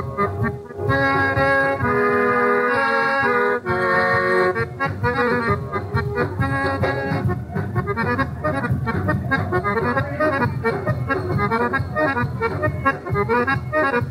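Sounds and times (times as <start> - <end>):
galop music: 0.0 - 14.1.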